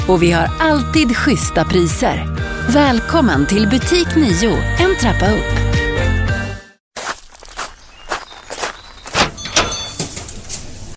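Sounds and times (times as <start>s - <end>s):
music: 0.0s - 6.8s
speech: 0.1s - 5.6s
customers' footsteps entering Kristinedals fabriker fabric store: 5.4s - 5.8s, 6.9s - 10.2s.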